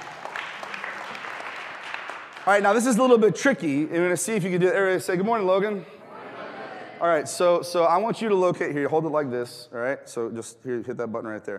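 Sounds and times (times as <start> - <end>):
audience applause welcoming a person onto a stage: 0.0 - 3.0
speech: 2.4 - 6.0, 7.0 - 11.5.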